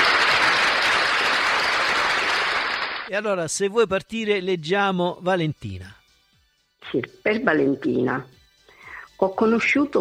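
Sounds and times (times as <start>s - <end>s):
audience applause: 0.0s - 3.1s
speech: 3.1s - 6.0s, 6.8s - 8.4s, 9.2s - 10.0s.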